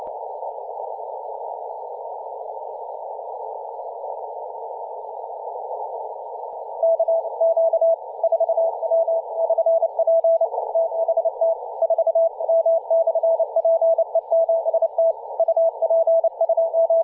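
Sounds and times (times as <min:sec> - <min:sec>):
CW Morse code CQ call on 3.507 MHz: 0:06.8 - 0:17.0.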